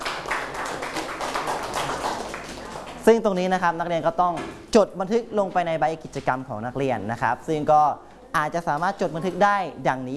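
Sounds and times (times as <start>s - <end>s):
classroom applause for a student: 0.0s - 3.1s
speech: 3.1s - 10.1s.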